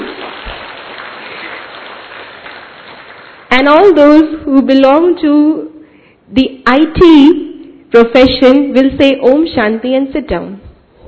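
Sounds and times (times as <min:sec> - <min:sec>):
audience clapping at a spiritual gathering: 0:00.0 - 0:03.6
speech: 0:03.6 - 0:05.7, 0:06.3 - 0:10.6.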